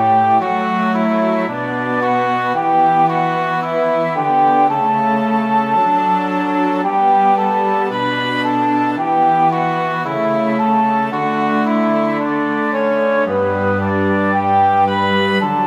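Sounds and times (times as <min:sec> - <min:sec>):
instrumental music in D major with three voices: 0:00.0 - 0:15.6.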